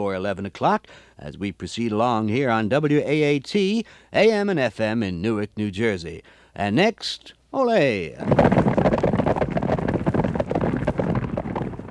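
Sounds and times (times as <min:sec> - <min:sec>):
speech: 0:00.0 - 0:08.6
bulls' hooves clattering in a bullfighting arena: 0:08.2 - 0:11.8
rumbling roar: 0:08.2 - 0:11.8.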